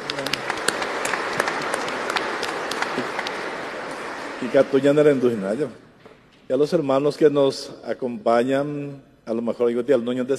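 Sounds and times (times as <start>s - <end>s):
audience applause: 0.0s - 5.5s
speech: 4.4s - 5.9s, 6.5s - 10.3s.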